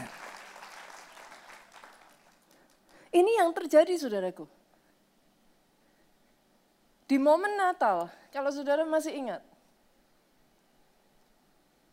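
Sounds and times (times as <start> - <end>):
audience applause: 0.0 - 2.9
speech: 3.1 - 4.6, 7.1 - 9.5.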